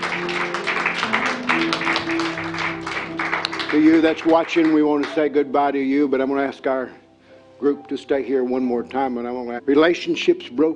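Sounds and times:
churchgoers clapping their hands in praise at a service: 0.0 - 5.3
sustained musical tones: 0.0 - 10.3
speech: 3.7 - 7.0, 7.6 - 10.7.

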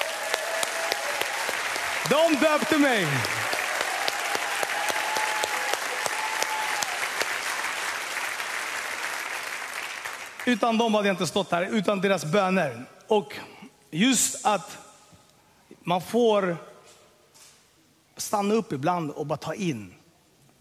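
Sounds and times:
audience applause: 0.0 - 10.6
speech: 2.1 - 3.4, 10.4 - 14.8, 15.9 - 16.7, 18.2 - 20.0.

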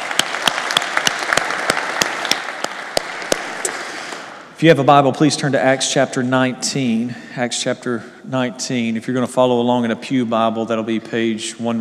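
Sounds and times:
church congregation applauding: 0.0 - 4.4
speech: 4.6 - 11.7.

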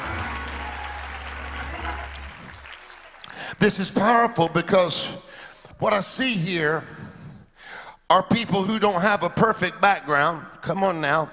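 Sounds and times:
audience clapping hands: 0.0 - 4.0
speech: 3.6 - 7.0, 8.1 - 11.3.

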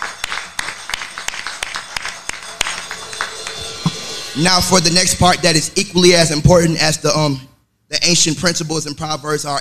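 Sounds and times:
audience clapping: 0.0 - 4.4
speech: 4.4 - 9.5.

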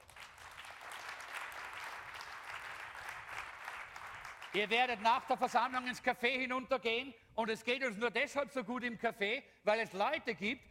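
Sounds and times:
audience applause: 0.0 - 4.9
speech: 4.6 - 10.6.

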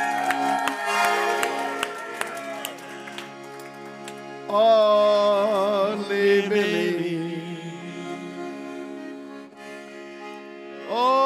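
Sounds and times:
audience clapping in rhythm: 0.0 - 4.6
sustained organ-like chords: 0.0 - 11.2
speech: 4.5 - 5.1.

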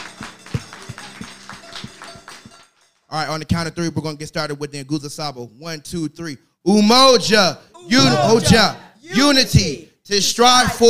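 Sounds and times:
audience clapping hands in praise: 0.0 - 3.1
speech: 3.1 - 10.8.

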